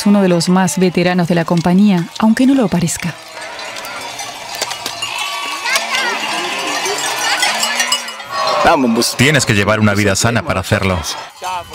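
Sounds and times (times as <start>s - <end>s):
speech: 0.0s - 3.5s, 8.7s - 11.7s
goat bells clanking: 0.0s - 11.7s
herd of goats bleating: 3.1s - 9.6s.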